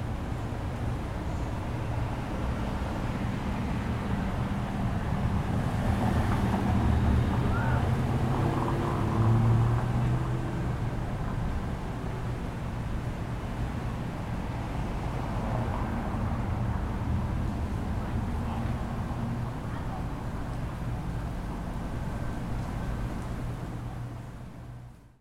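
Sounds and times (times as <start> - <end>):
street ambience: 0.0 - 25.1.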